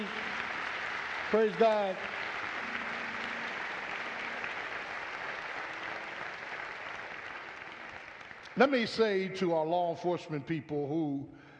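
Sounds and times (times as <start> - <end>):
audience applause: 0.0 - 9.3
speech: 1.3 - 2.2, 8.6 - 11.4.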